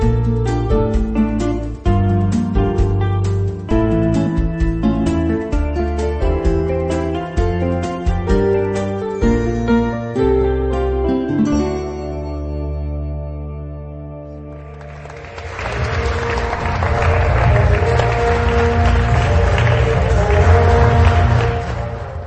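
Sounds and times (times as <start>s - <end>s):
music: 0.0s - 22.2s
audience applause at award ceremony: 14.6s - 22.2s.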